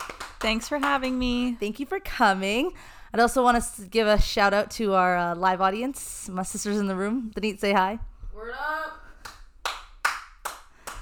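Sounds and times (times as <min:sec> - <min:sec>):
one person clapping for herself: 0:00.0 - 0:01.3, 0:09.2 - 0:11.0
speech: 0:00.4 - 0:09.0.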